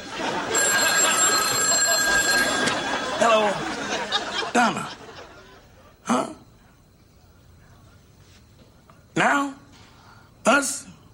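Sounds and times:
telephone ringing: 0.0s - 3.5s
laughter: 0.0s - 6.0s
speech: 4.6s - 5.0s.

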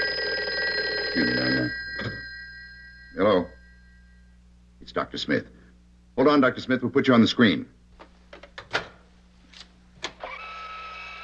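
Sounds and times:
telephone ringing in an old radio drama: 0.0s - 4.3s
constant electrical hum: 0.0s - 11.2s
speech: 1.2s - 2.1s, 3.2s - 3.5s, 5.0s - 5.6s, 6.2s - 7.8s.

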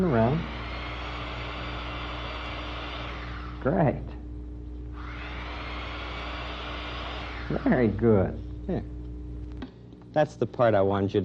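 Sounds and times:
speech: 0.0s - 0.6s, 3.6s - 4.2s, 7.5s - 9.0s, 10.1s - 11.2s
voice imitating an electric drill: 0.0s - 3.9s, 5.0s - 8.2s.

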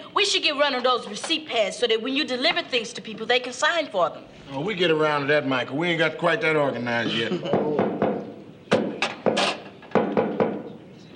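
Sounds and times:
speech: 0.2s - 7.8s
knocking on a door: 7.5s - 10.8s.

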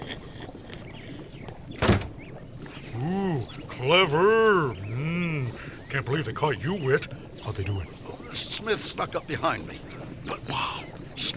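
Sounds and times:
faint steady hiss: 0.0s - 11.3s
door thump: 1.8s - 2.1s
speech: 3.8s - 4.8s, 5.9s - 11.3s.

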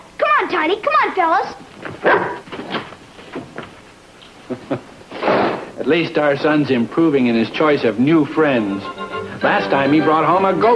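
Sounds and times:
speech: 0.4s - 2.4s, 5.8s - 10.7s
dog barking and yipping: 2.0s - 2.4s.

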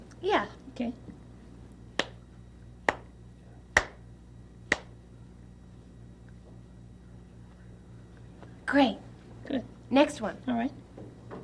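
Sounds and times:
speech: 0.2s - 1.2s, 8.7s - 10.8s
hand claps: 2.0s - 2.2s, 2.8s - 3.1s, 3.7s - 4.0s, 4.7s - 5.0s.

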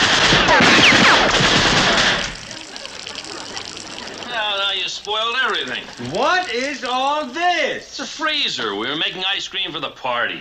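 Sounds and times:
machine-gun fire: 0.0s - 2.6s
laughter: 1.6s - 7.4s
speech: 5.6s - 10.3s.

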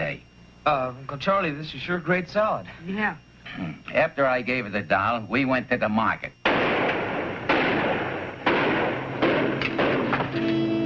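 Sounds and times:
faint whine: 0.0s - 10.8s
speech: 0.6s - 6.4s
truck engine backfire bangs: 6.4s - 10.4s.

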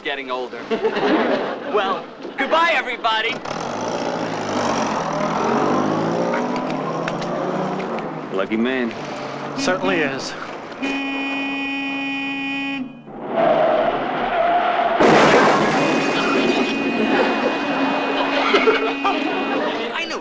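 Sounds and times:
speech: 0.0s - 3.8s, 8.4s - 11.0s
laughter: 0.6s - 2.6s, 16.1s - 20.1s
car skidding roar after driver steps on the gas instead of the brake: 3.5s - 7.9s, 13.1s - 19.8s
sustained horn-like tone: 10.8s - 13.2s, 15.8s - 19.9s.

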